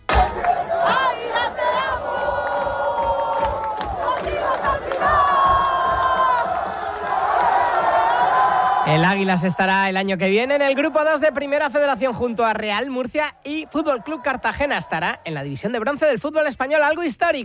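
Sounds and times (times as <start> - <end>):
long sustained chant-like cries: 0.0 - 9.7, 10.4 - 12.4, 13.2 - 15.3
large crowd of football fans cheering and shouting: 0.0 - 16.0
speech: 8.9 - 17.4.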